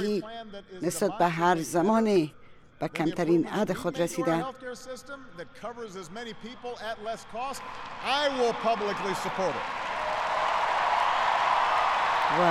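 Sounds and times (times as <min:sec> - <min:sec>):
speech: 0:00.0 - 0:10.0
crowd applause: 0:07.5 - 0:12.4.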